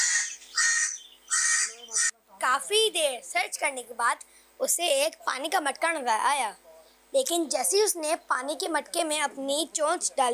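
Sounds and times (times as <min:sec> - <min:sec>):
crow cawing: 0:00.0 - 0:02.1
speech: 0:02.4 - 0:10.3.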